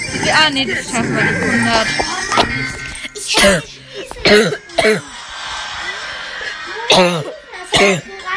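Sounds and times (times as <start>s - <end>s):
speech: 0.3s - 2.8s, 3.3s - 5.1s, 6.9s - 8.1s
person coughing after choking: 3.1s - 5.1s, 6.9s - 8.2s
laughter: 5.1s - 7.6s.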